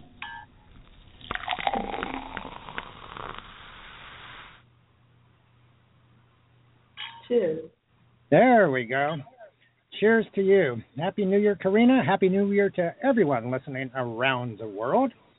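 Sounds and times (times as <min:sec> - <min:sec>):
champagne being poured into glasses and fizzing: 0:00.8 - 0:04.6
speech: 0:07.3 - 0:07.7, 0:08.3 - 0:09.3, 0:10.0 - 0:15.2.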